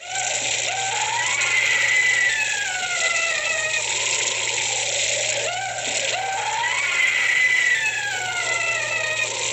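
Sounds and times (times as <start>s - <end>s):
eerie haunted house sound effect scream: 0.0s - 9.5s.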